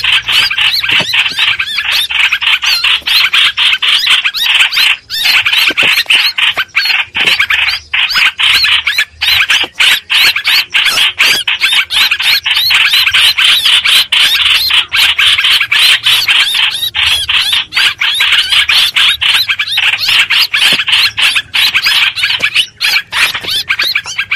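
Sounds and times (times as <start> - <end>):
streak-eared bulbul distress calls: 0.0 - 24.3.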